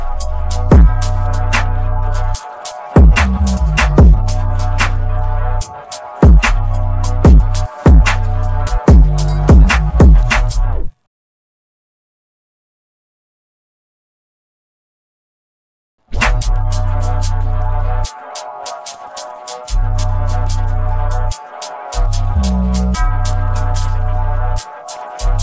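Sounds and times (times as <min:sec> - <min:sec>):
instrumental music: 0:00.0 - 0:11.0, 0:16.1 - 0:25.4.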